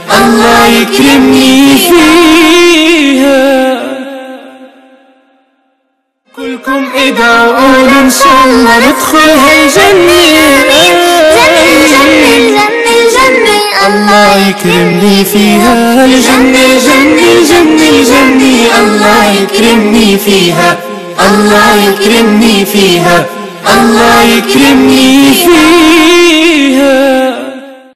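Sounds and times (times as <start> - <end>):
person singing an Arabic nasheed: 0.0 - 5.2, 6.3 - 27.8.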